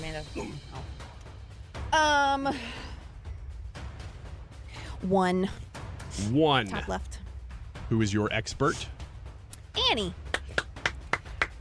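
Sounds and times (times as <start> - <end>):
speech: 0.2 - 1.1, 1.9 - 2.9, 5.0 - 7.2, 7.9 - 9.0, 9.8 - 10.2
applause: 10.3 - 11.5.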